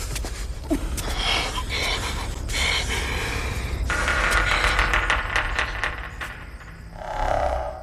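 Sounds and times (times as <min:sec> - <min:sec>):
tense film score: 0:00.0 - 0:07.8
labored breathing: 0:00.2 - 0:04.0.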